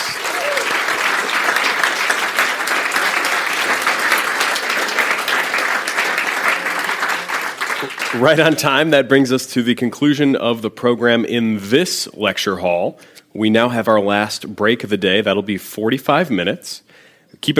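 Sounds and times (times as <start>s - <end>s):
audience applause from a large crowd: 0.0s - 8.7s
speech: 8.2s - 17.5s.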